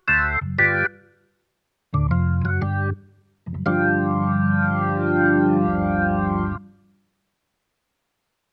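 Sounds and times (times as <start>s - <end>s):
Kawai ES-520 jazz organ: 0.0s - 1.0s, 2.0s - 6.6s.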